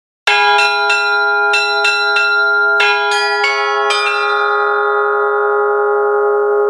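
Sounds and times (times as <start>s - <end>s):
Christmas song: 0.3s - 6.6s.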